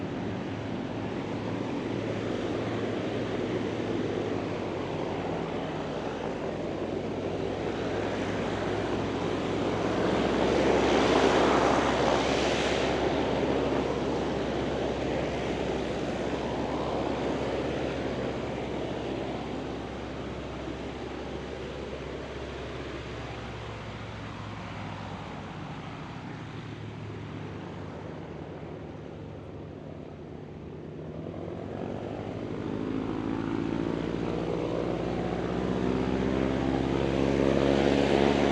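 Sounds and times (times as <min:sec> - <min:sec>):
distant Lockheed Hudson twin engine light bomber preflight: 0:00.0 - 0:38.4.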